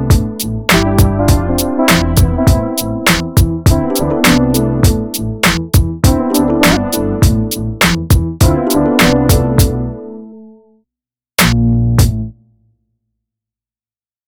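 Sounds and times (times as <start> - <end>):
funk music: 0.0 - 10.4, 11.4 - 12.4.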